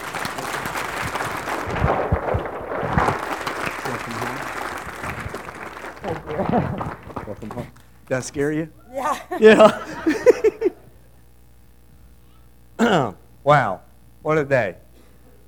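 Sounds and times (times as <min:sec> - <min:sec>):
laughter: 0:00.0 - 0:07.8, 0:09.0 - 0:11.0
church congregation applauding to welcome new members: 0:00.0 - 0:08.4
speech: 0:06.4 - 0:06.8, 0:08.1 - 0:09.9, 0:13.5 - 0:14.8.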